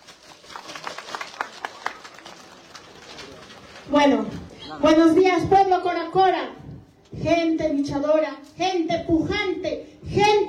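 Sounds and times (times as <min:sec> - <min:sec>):
crowd clapping: 0:00.0 - 0:04.2
speech: 0:03.9 - 0:06.6, 0:07.2 - 0:10.4.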